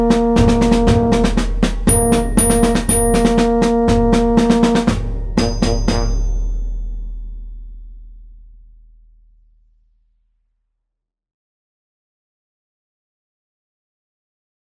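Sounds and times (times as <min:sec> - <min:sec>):
band playing a march: 0:00.0 - 0:06.6.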